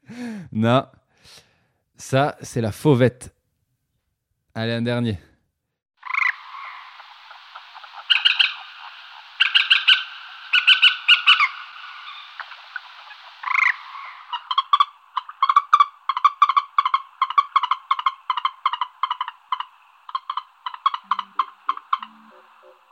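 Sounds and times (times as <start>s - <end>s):
speech: 0.5s - 1.4s, 2.0s - 3.4s, 4.6s - 5.3s
common moorhen call: 6.0s - 22.9s.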